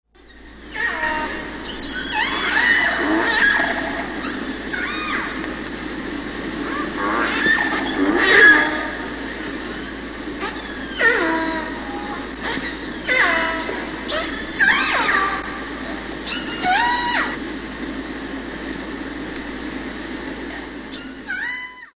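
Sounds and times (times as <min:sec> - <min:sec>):
orca song: 0:00.5 - 0:05.6, 0:06.2 - 0:17.4.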